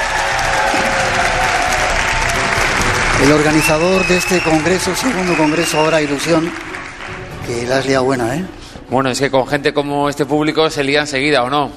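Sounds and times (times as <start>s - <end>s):
audience applause: 0.0s - 7.8s
speech: 3.2s - 6.7s, 7.5s - 11.7s.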